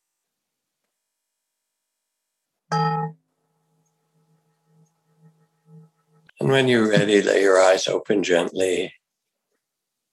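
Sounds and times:
meditation bell being rung: 2.7 - 6.3
speech: 6.4 - 9.0.

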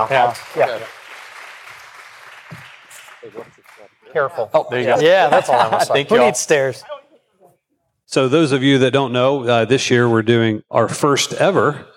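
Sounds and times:
speech: 0.0 - 1.0, 3.2 - 7.0, 8.1 - 11.9
audience applause for panelists: 0.0 - 4.0
laughter: 3.2 - 7.2.

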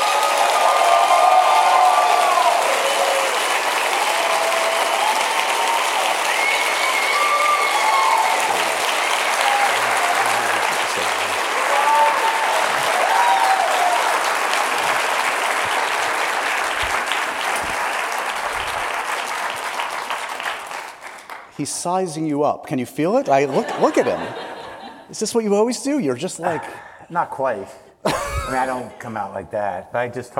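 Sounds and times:
audience applause welcoming a guest on stage at a 92NY event: 0.0 - 21.5
speech: 21.6 - 24.5, 25.1 - 27.9, 28.5 - 30.3
laughter: 23.3 - 25.2, 28.1 - 29.0.

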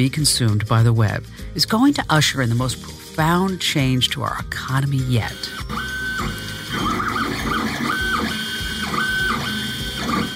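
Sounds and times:
speech: 0.0 - 7.0
3D printer stepper motors whirring and whining: 5.2 - 10.3
3D printer mechanical rattling and grinding: 5.6 - 10.3.

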